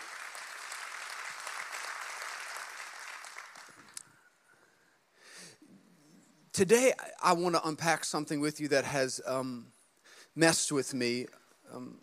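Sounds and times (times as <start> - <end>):
audience applause: 0.0 - 4.0
speech: 6.6 - 9.8, 10.4 - 12.0.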